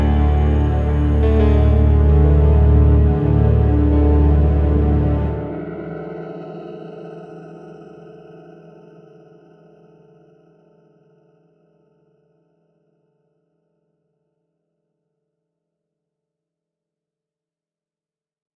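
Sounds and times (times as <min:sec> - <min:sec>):
suspense music: 0:00.0 - 0:08.5.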